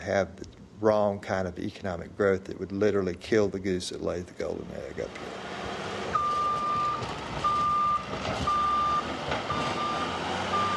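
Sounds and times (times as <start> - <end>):
speech: 0.0 - 5.6, 8.2 - 8.6
bulldozers rumbling and grinding: 4.7 - 10.7
high-pitched reversing beep: 6.1 - 10.7.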